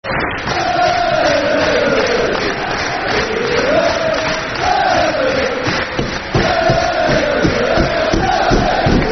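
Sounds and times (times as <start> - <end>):
football crowd chanting soccer songs: 0.1 - 9.1.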